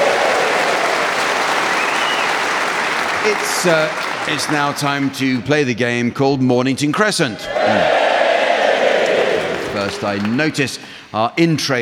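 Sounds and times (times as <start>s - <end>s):
crowd applause: 0.0s - 5.4s, 7.5s - 10.9s
speech: 3.2s - 8.0s, 9.8s - 11.8s.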